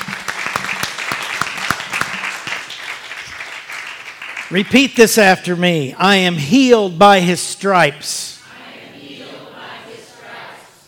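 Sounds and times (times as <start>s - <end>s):
audience clapping: 0.0s - 5.5s
speech: 4.5s - 8.3s.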